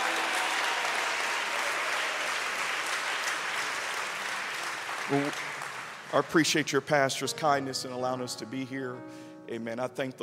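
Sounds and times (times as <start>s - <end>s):
audience clapping hands: 0.0s - 7.1s
speech: 5.1s - 5.5s, 6.1s - 10.2s.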